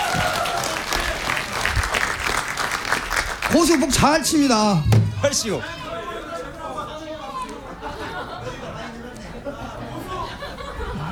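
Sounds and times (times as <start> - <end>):
crowd clapping: 0.0 - 5.7
laughter: 3.5 - 11.1
speech: 3.6 - 5.8.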